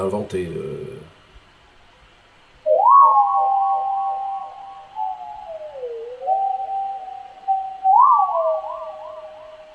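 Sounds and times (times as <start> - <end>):
electronic whistling tone generated from soundscape: 2.6 - 9.7.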